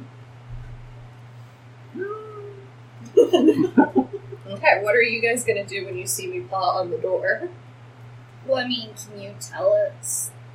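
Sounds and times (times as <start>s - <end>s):
steady low hum: 0.0s - 10.5s
soft whimper: 2.0s - 2.7s
laughter: 3.0s - 4.5s
speech: 3.3s - 7.6s, 8.5s - 10.5s.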